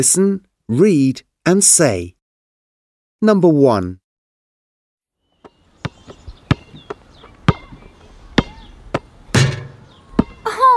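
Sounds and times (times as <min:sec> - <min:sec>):
speech: 0:00.0 - 0:02.2, 0:03.2 - 0:04.0
basketball bouncing: 0:05.4 - 0:10.5.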